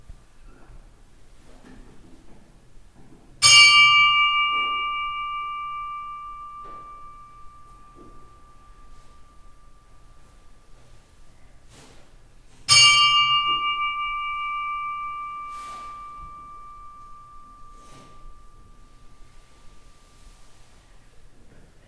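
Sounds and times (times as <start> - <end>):
Möðrudalur church bells tolling for a funeral: 3.4 - 11.3, 12.6 - 20.7.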